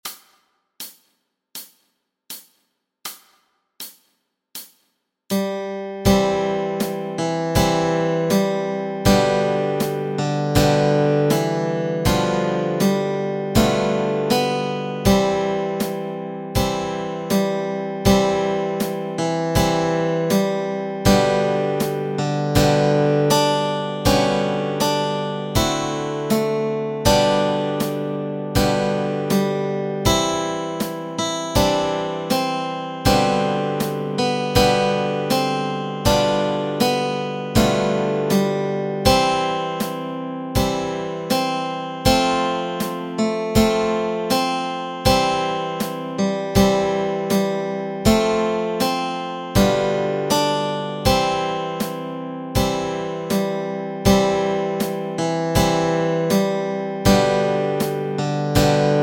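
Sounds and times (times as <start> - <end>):
melody and chords: 5.3 - 59.0.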